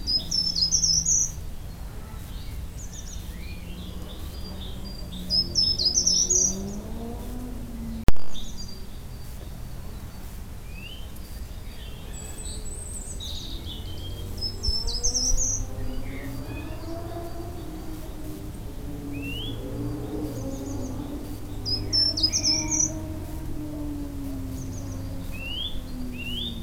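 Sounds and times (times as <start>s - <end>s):
short-toed treecreeper Certhia brachydactyla singing: 0.0s - 26.6s.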